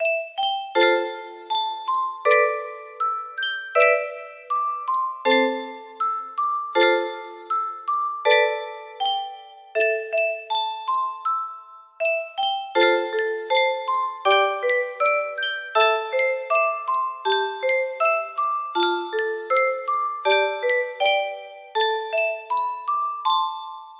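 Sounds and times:
music box: 0.0 - 23.9.

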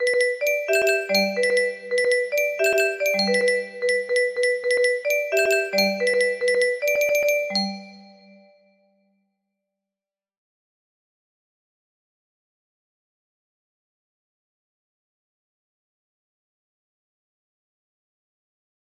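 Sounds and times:
music box melody: 0.0 - 8.4.

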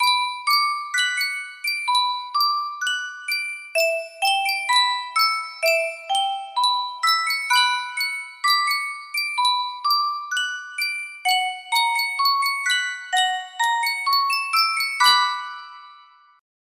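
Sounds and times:
Yunsheng custom tune music box: 0.0 - 16.4.

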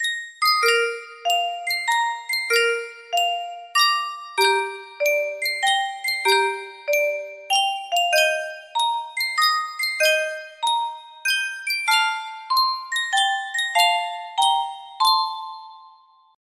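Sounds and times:
Yunsheng custom tune music box: 0.0 - 16.4.

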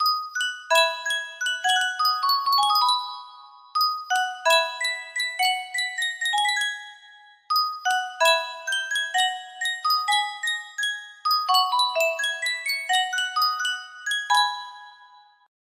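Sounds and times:
Sankyo music box: 0.0 - 15.5.

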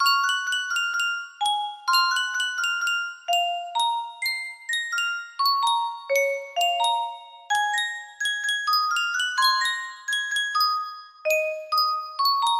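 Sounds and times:
Yunsheng custom tune music box melody: 0.0 - 12.5.

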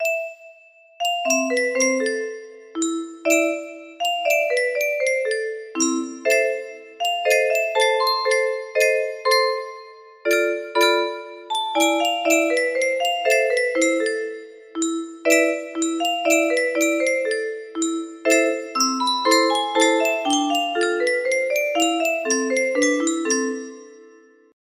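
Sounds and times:
music box playing a waltz in B minor: 0.0 - 24.6.

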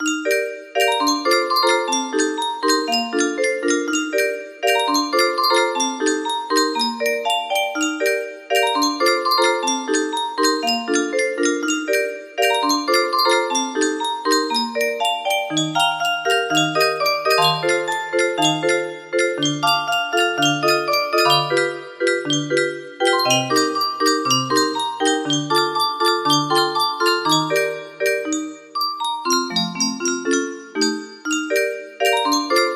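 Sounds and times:
60-note music box: 0.0 - 32.7.

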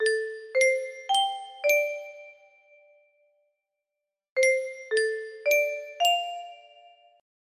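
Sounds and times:
music box melody: 0.0 - 2.5, 4.4 - 7.0.

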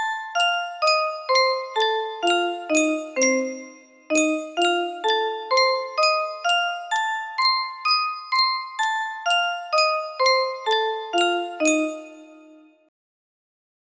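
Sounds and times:
music box playing in B flat major: 0.0 - 12.8.

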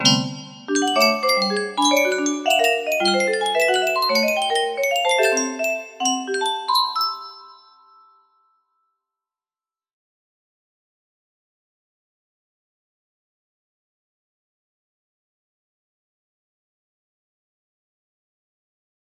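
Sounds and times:
music box melody: 0.0 - 8.5.

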